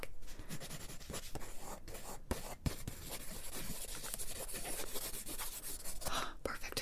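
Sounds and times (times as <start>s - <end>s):
drawing on paper while sketching a face portrait: 0.5s - 6.1s.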